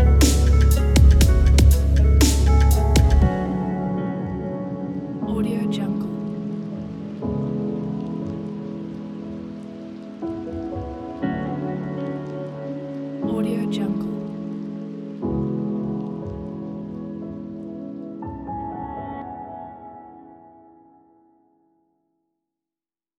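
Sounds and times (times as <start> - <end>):
positive relaxing guitar piece: 0.0 - 18.2.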